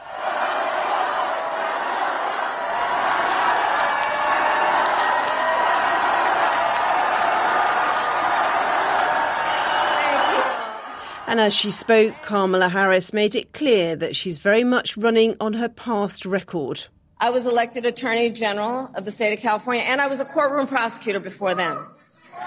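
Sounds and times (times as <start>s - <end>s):
large rally audience cheering and chanting a name: 0.0s - 12.5s
speech: 11.3s - 22.0s.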